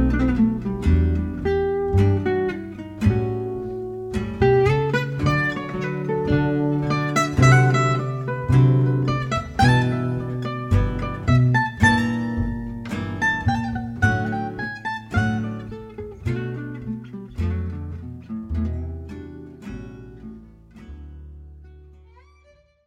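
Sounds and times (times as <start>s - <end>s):
gypsy jazz music: 0.0s - 22.8s.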